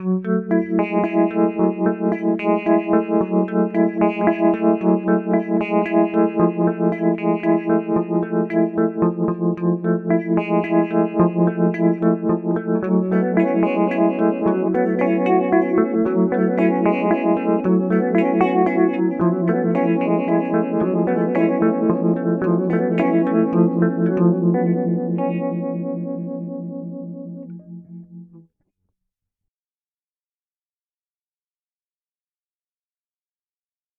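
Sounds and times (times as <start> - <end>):
Electro Harmonix Mod 11 modulation pedal sound: 0.2 - 28.4.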